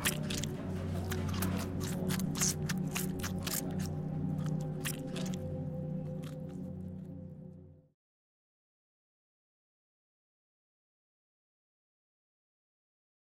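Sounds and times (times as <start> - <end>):
biting and chewing a sandwich: 0.0 - 7.1.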